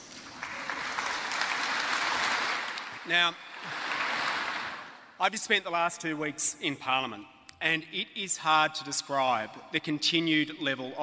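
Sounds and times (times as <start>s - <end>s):
applause: 0.0s - 5.1s
speech: 3.1s - 3.9s, 5.2s - 11.0s.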